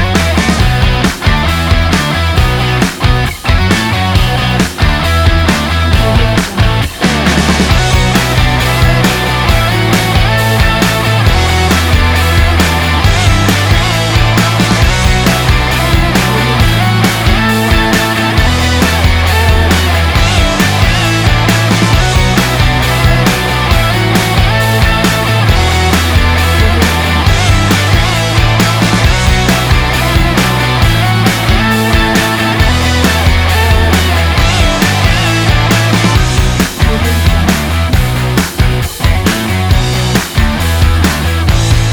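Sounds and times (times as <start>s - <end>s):
positive inspiring energetic rock music: 0.0s - 41.9s.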